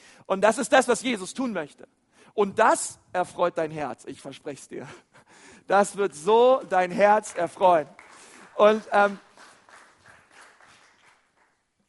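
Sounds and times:
speech: 0.3 - 8.0, 8.6 - 9.3
scattered claps: 6.6 - 11.8.

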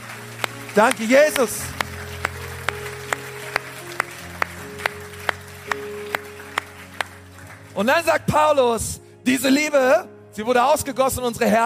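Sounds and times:
audience applause: 0.0 - 7.9
speech: 0.8 - 1.8, 7.8 - 11.6.

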